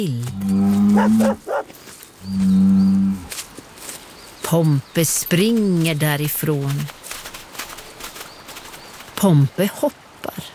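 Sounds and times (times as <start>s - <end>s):
speech: 0.0s - 1.6s, 2.2s - 2.9s, 4.5s - 7.0s, 9.2s - 10.5s
bull mooing: 0.2s - 1.6s, 2.2s - 3.3s.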